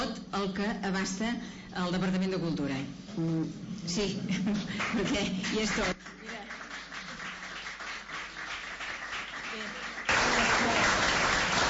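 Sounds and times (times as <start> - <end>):
speech: 0.3 - 6.2
audience applause: 5.8 - 11.6.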